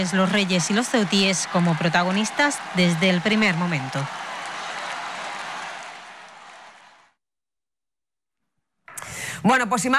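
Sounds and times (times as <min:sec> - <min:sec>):
speech: 0:00.0 - 0:04.2, 0:09.4 - 0:09.9
crowd applauding during royal visit: 0:00.0 - 0:07.2.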